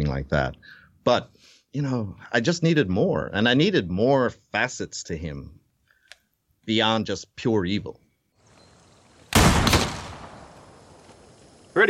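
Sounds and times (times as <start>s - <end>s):
speech: 0.1s - 5.6s, 6.6s - 8.0s
rifle shot during shooting practice: 9.3s - 10.9s.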